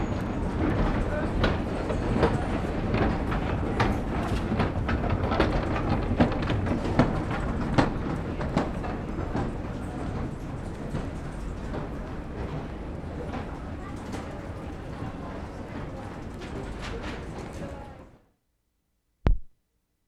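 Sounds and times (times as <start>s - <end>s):
1927 wooden escalators running in a department store: 0.0s - 18.1s.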